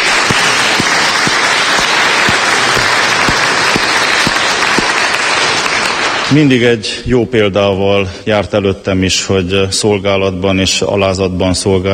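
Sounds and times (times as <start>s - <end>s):
audience applause: 0.0s - 6.6s
speech: 6.3s - 11.9s.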